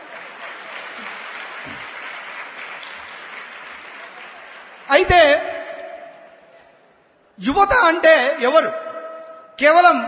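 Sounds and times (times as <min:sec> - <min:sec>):
audience applause at a talk to Sathya Sai youth: 0:00.0 - 0:04.9
speech: 0:05.0 - 0:05.4, 0:07.4 - 0:08.8, 0:09.6 - 0:10.0.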